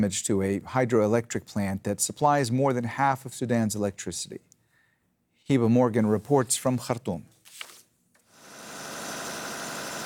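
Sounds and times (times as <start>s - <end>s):
speech: 0.0s - 4.5s, 5.5s - 7.3s
electric generator running during a power outage in Khartoum, Sudan: 8.4s - 10.0s.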